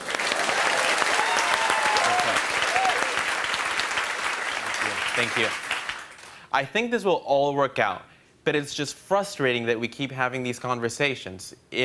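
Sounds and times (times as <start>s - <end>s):
crowd applause: 0.0s - 6.4s
faint cheers: 0.7s - 3.3s
speech: 5.2s - 5.6s, 6.5s - 11.8s.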